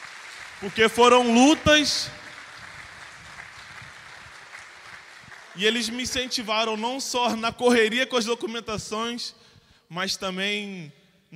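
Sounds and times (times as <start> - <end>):
church audience applauding: 0.0 - 6.3
speech: 0.6 - 2.2, 5.6 - 11.3.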